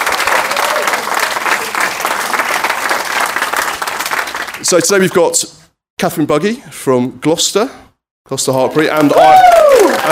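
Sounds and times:
audience applause: 0.0 - 4.8, 8.9 - 10.1
speech: 4.7 - 10.1.

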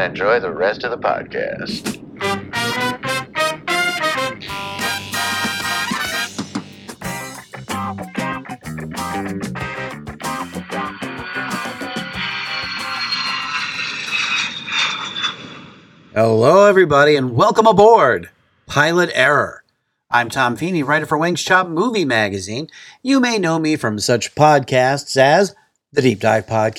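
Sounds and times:
speech: 0.0 - 3.0, 16.2 - 26.7
airplane engine roar in cruising flight: 1.8 - 16.2
brighter hissing whoosh: 10.4 - 16.1.

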